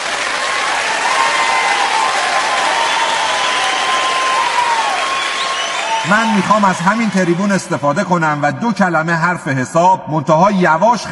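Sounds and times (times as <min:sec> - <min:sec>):
audience applause in honour of a doctor: 0:00.0 - 0:08.2
speech: 0:06.1 - 0:11.1.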